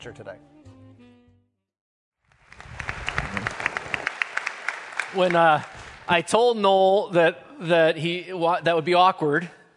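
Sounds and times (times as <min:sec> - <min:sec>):
speech: 0:00.0 - 0:00.6, 0:05.1 - 0:09.6
crowd applause: 0:02.3 - 0:06.2.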